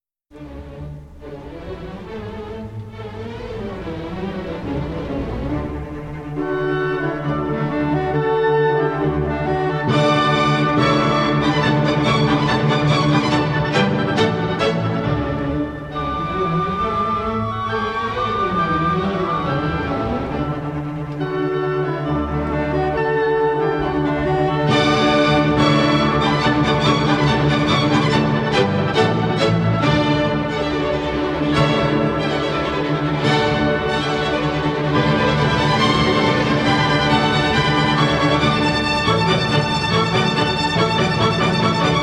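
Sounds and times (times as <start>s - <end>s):
instrumental classical piece: 0.3s - 42.0s.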